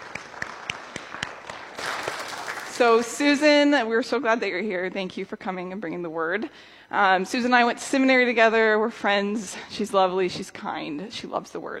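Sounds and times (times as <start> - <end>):
congregation applauding to welcome a guest preacher: 0.0 - 3.2
speech: 2.8 - 11.7.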